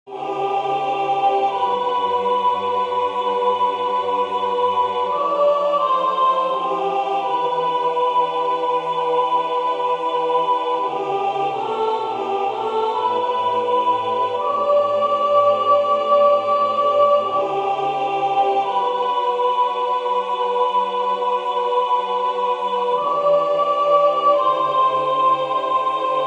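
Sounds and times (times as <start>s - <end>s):
soprano chanting: 0.1s - 26.2s.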